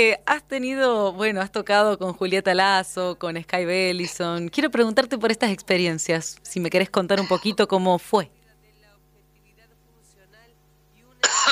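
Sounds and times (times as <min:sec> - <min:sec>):
speech: 0:00.0 - 0:08.4
person coughing after yerba mate went down the wrong way: 0:07.2 - 0:07.6, 0:11.2 - 0:11.5.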